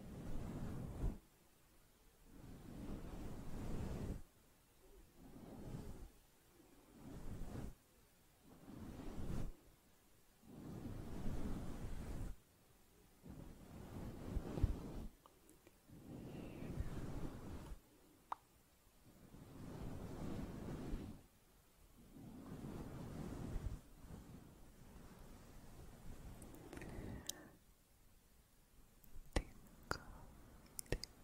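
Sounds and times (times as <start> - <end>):
slow soft brushing over a fluffy mic: 0.0 - 1.2, 2.3 - 4.3, 5.0 - 7.8, 8.4 - 9.7, 10.4 - 12.4, 13.2 - 15.2, 15.8 - 18.0, 19.0 - 21.3, 22.0 - 27.6
mouth clicks: 30.6 - 31.2.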